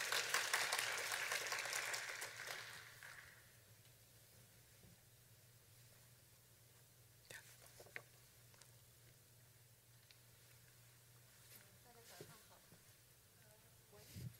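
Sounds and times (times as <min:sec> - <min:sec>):
audience applauding: 0:00.0 - 0:03.5.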